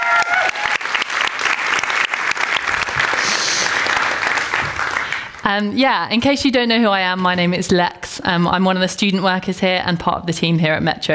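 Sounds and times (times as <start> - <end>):
audience applause: 0.0 - 5.5
speech: 5.5 - 11.1.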